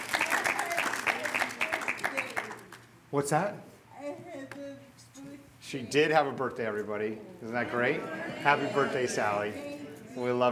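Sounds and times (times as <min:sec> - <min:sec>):
small group clapping: 0:00.0 - 0:02.9
speech: 0:03.1 - 0:03.7, 0:05.7 - 0:10.4.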